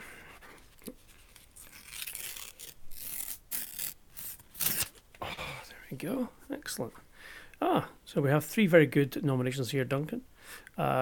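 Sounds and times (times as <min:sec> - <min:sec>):
envelope torn open at an award presentation: 0:01.1 - 0:05.0
speech: 0:05.9 - 0:10.9.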